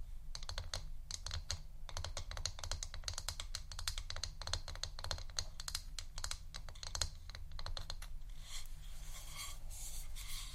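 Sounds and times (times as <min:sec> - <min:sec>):
computer keyboard typing: 0:00.4 - 0:08.1
soft bright scratchy rustling: 0:08.4 - 0:10.5.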